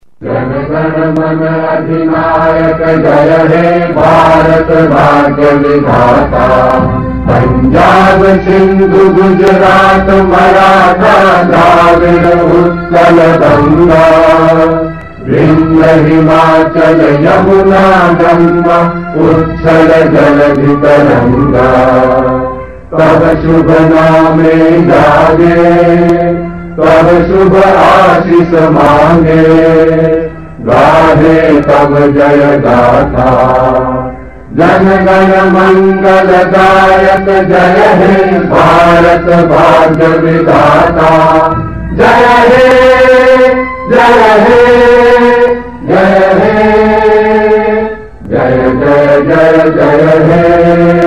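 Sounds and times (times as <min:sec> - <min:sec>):
national anthem: 0:00.0 - 0:51.0.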